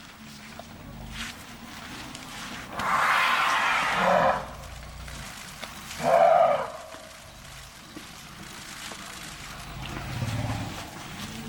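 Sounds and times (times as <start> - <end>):
Myna harsh chattering calls: 2.7 - 4.5, 6.0 - 6.9.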